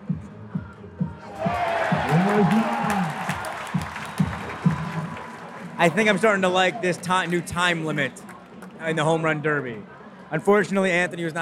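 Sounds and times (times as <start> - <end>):
whoops: 1.2 - 5.4
stadium crowd cheering at home run derby: 1.2 - 9.6
applause: 1.3 - 8.9
speech: 5.8 - 11.4.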